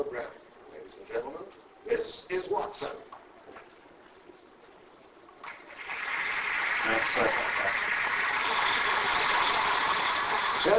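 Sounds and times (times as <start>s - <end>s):
speech: 2.1s - 3.2s, 6.9s - 7.9s
studio audience applause: 5.4s - 10.7s.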